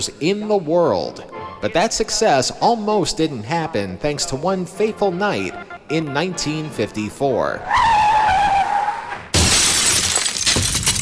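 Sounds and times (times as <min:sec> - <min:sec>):
speech: 0:00.0 - 0:08.0
car crash sound effect: 0:08.9 - 0:11.0.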